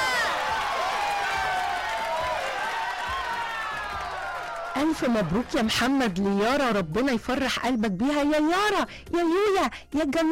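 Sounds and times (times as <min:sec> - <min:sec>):
crowd cheering: 0:00.0 - 0:06.7
speech: 0:04.8 - 0:10.2.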